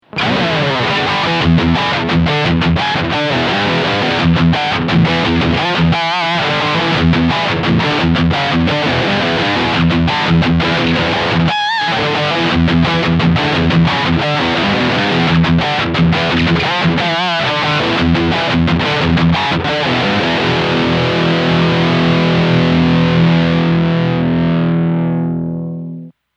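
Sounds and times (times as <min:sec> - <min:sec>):
guitar through Two Notes ReVolt preamp on high gain: 0:00.0 - 0:26.2.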